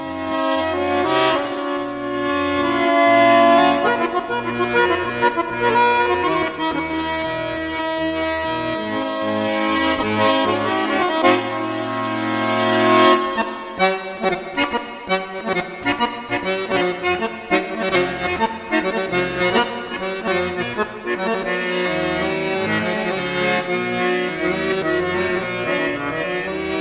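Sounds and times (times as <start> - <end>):
accordion with plate reverb: 0.0 - 26.7.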